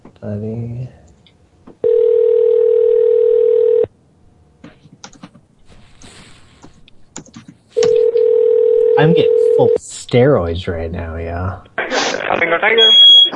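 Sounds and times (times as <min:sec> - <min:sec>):
speech: 0:00.2 - 0:01.0, 0:09.0 - 0:13.3
telephone dial tone: 0:01.8 - 0:03.9, 0:07.8 - 0:09.4.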